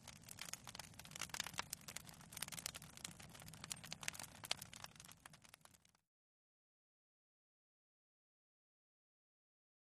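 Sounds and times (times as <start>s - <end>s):
small fire crackling in a fireplace: 0.0s - 6.1s.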